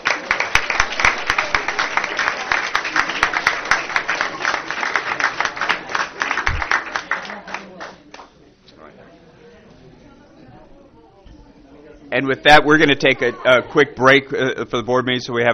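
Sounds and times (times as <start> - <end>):
audience applause: 0.0 - 8.3
speech: 12.2 - 15.5.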